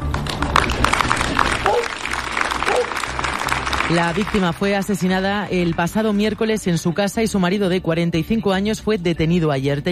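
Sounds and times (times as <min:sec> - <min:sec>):
applause at a protest gathering: 0:00.0 - 0:06.4
speech: 0:03.9 - 0:09.9.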